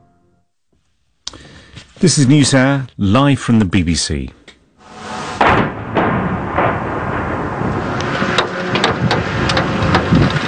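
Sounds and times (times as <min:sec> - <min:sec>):
speech: 0:02.0 - 0:04.4
booming blasts of missiles and drones striking a city: 0:04.8 - 0:10.4
continuous rumbling roar of missiles and drones striking a city: 0:04.8 - 0:10.4.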